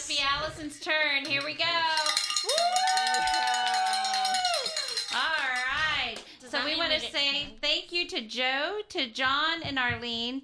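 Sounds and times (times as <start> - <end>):
speech: 0.1 - 3.5, 6.5 - 10.4
bell ringing for pledges: 2.0 - 5.6.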